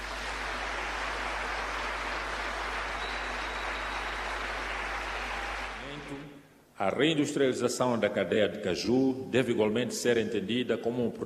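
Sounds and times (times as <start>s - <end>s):
crowd applause: 0.0s - 6.3s
speech: 6.1s - 11.2s.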